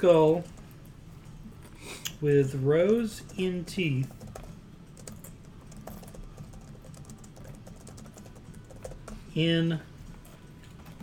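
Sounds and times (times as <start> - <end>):
speech: 0.0 - 0.6, 1.9 - 4.2, 9.4 - 9.9
keyboard typing: 2.8 - 9.3, 10.1 - 11.0.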